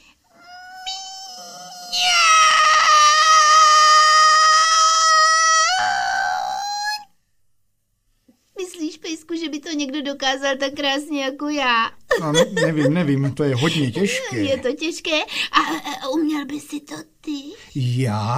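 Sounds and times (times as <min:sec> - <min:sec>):
person imitating a cat meow: 0:00.3 - 0:07.1
speech: 0:09.7 - 0:18.3
laughter: 0:12.1 - 0:14.6.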